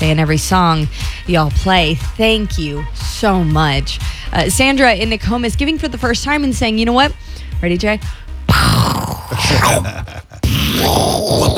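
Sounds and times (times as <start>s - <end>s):
speech: 0.1s - 11.5s
voice imitating a pirate cannon: 8.5s - 11.5s.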